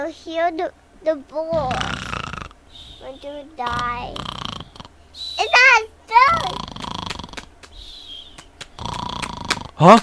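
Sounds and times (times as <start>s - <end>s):
speech: 0.0s - 4.4s, 9.8s - 10.0s
fake snoring: 1.5s - 5.0s, 5.6s - 7.5s, 8.8s - 10.0s.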